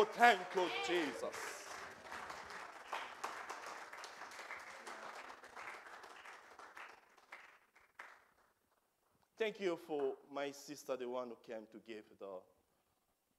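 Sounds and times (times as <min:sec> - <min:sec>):
speech: 0:00.0 - 0:01.6, 0:09.4 - 0:12.6
audience clapping: 0:00.0 - 0:08.8.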